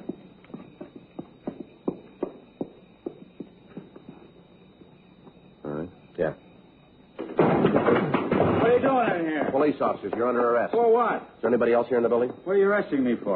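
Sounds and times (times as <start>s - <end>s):
footsteps: 0.0s - 5.5s
speech: 6.2s - 6.5s, 8.8s - 13.3s
door being kicked in: 7.2s - 9.6s.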